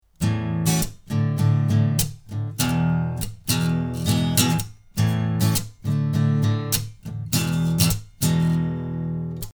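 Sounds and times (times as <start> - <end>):
modern guitar playing: 0.2 - 9.5.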